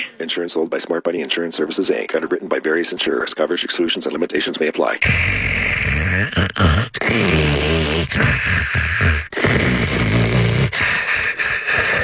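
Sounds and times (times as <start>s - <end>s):
speech: 0.0s - 9.2s
snoring: 5.0s - 12.0s.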